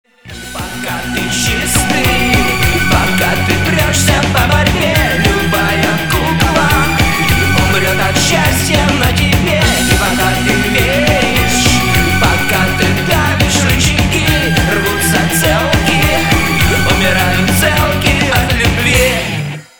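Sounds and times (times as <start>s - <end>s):
ringtone: 0.3s - 19.2s.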